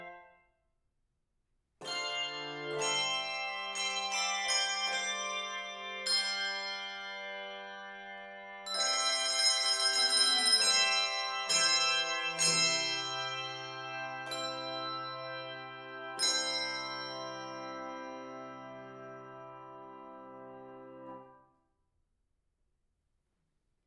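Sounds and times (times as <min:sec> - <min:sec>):
3-5 octave handbells ringing: 0:02.0 - 0:07.2, 0:08.7 - 0:18.4.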